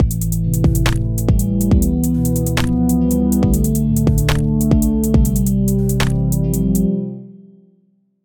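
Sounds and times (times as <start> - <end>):
music beat: 0.0 - 7.0.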